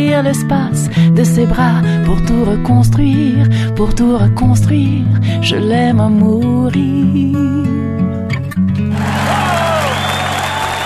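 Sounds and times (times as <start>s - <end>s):
speech: 0.2s - 8.0s
children clapping: 8.9s - 10.8s.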